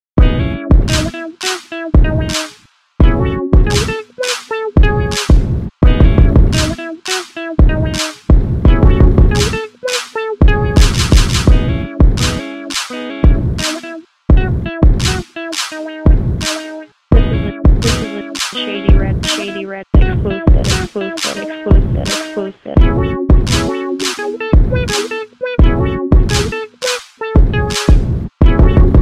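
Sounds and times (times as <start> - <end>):
instrumental music: 0.2 - 29.0.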